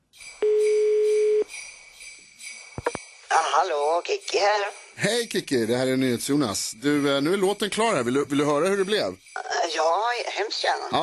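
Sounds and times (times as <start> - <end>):
telephone ringback tone during a call: 0.4 - 1.5
speech: 3.5 - 11.0.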